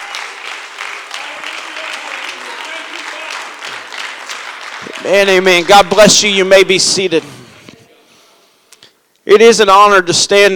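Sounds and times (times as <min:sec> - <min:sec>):
audience clapping hands: 0:00.0 - 0:07.2
speech: 0:05.0 - 0:07.4, 0:09.3 - 0:10.5.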